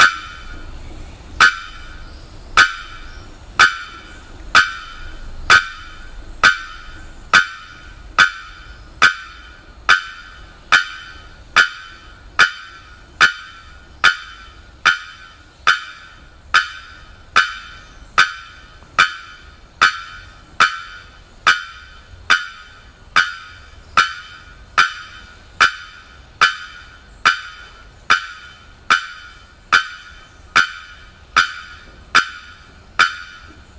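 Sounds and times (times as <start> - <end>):
Bearded Bellbird calling: 0.0 - 33.7.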